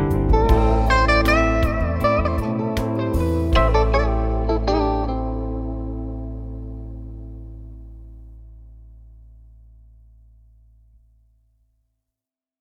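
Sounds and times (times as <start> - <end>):
calm guitar music: 0.0 - 8.4.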